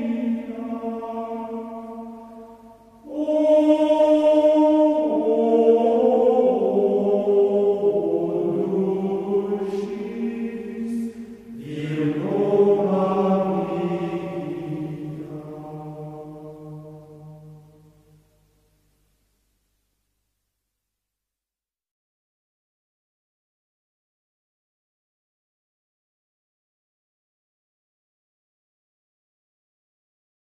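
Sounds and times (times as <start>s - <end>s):
choir schola chanting in simple tone: 0.0s - 17.9s.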